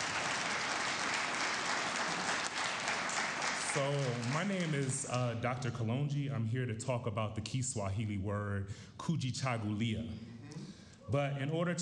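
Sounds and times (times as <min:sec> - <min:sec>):
round of applause: 0:00.0 - 0:05.4
speech: 0:03.8 - 0:11.8.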